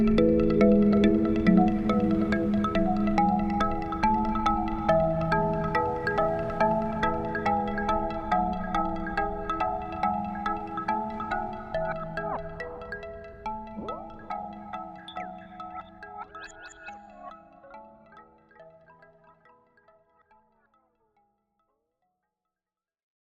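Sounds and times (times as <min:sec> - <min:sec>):
beach ambience: 0:00.2 - 0:15.1.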